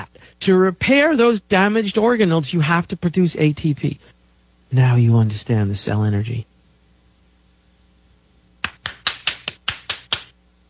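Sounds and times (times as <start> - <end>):
speech: 0.4 - 6.5
hand clapping: 8.6 - 10.4.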